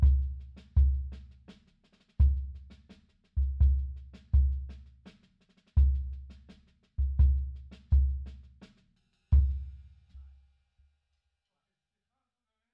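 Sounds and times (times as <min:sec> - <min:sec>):
bass drum: 0:00.0 - 0:01.6, 0:02.2 - 0:05.1, 0:05.8 - 0:08.6, 0:09.3 - 0:09.9.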